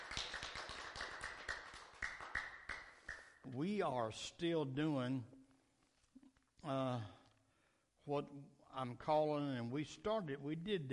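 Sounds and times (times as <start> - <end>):
audience clapping: 0.0 - 3.4
speech: 3.5 - 5.4, 6.6 - 7.2, 8.0 - 10.9.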